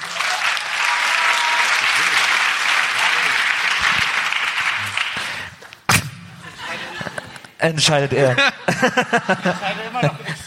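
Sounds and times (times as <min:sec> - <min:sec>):
audience applause: 0:00.0 - 0:05.6
laughter: 0:06.3 - 0:10.4
speech: 0:07.6 - 0:10.4.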